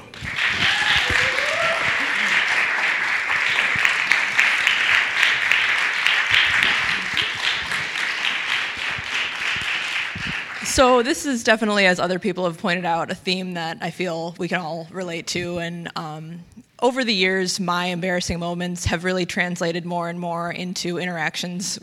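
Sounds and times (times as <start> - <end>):
cheer: 0.0 - 7.8
crowd applause: 0.0 - 10.8
speech: 10.8 - 21.8.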